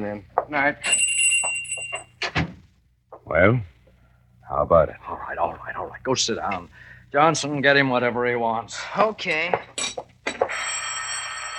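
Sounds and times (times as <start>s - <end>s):
speech: 0.0s - 1.1s, 3.3s - 3.7s, 4.5s - 10.0s
telephone bell ringing: 0.8s - 2.1s, 10.3s - 11.5s.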